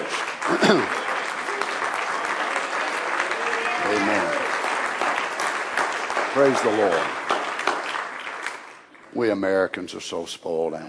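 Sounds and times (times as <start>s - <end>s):
audience clapping hands: 0.0s - 10.0s
speech: 0.5s - 1.0s, 6.4s - 7.2s, 9.2s - 10.8s.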